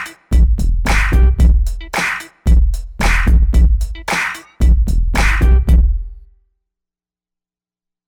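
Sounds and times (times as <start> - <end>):
AKAI XR20 drum machine bounce factory patterns: 0.0 - 6.2.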